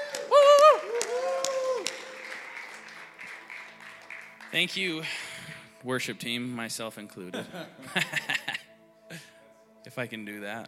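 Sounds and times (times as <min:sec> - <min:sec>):
audience clapping: 0:00.0 - 0:05.7
speech: 0:04.6 - 0:08.6, 0:10.0 - 0:10.6
laughter: 0:07.3 - 0:08.6.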